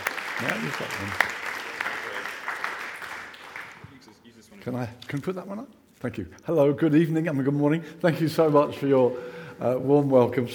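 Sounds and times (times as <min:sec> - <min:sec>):
audience applause: 0:00.0 - 0:04.1
speech: 0:00.4 - 0:01.4, 0:04.6 - 0:10.5.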